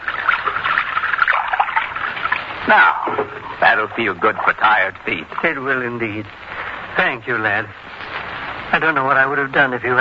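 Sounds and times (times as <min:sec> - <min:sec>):
water poured for a guest: 0:00.0 - 0:06.7
speech: 0:02.7 - 0:08.0, 0:08.7 - 0:10.0.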